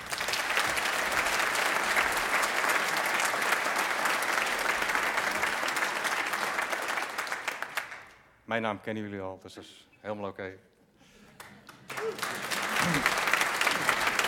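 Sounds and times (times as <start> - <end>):
audience applause: 0.0 - 8.2, 11.4 - 14.2
speech: 8.5 - 10.7, 12.0 - 13.3.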